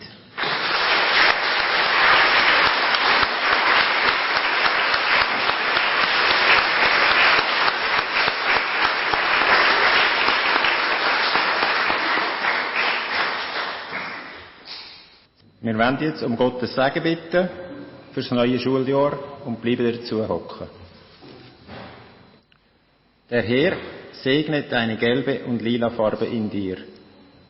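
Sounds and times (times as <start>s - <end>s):
audience applauding: 0.4s - 14.6s
speech: 15.7s - 20.8s, 23.3s - 26.9s.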